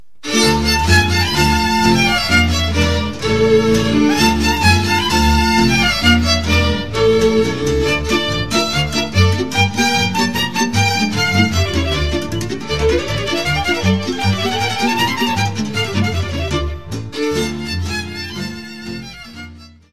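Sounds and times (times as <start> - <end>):
Kopanice folk string music from Slovakia: 0.2 - 19.9.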